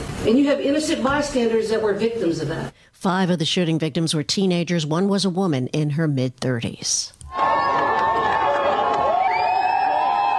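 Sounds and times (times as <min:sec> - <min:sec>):
speech: 0:00.2 - 0:07.4
adoring fans cheering at the UConn men's basketball championship parade in Hartford: 0:07.3 - 0:10.3
fans' shrill whoops and shouts at the UConn championship parade: 0:07.3 - 0:10.3.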